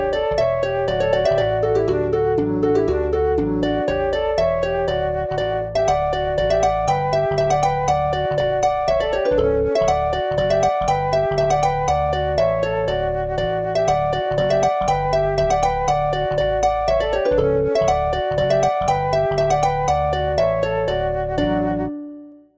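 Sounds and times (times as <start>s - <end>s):
flute VST: 0.0s - 22.5s
virtual harp VST: 0.0s - 22.5s.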